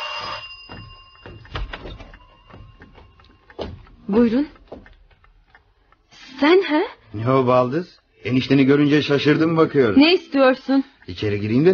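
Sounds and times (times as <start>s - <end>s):
doorbell ringing: 0.0s - 4.9s
speech: 4.1s - 4.6s, 6.4s - 11.7s.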